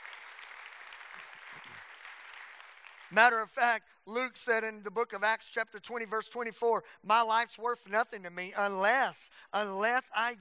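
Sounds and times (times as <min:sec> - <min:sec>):
audience clapping: 0:00.0 - 0:03.8
speech: 0:03.1 - 0:10.4.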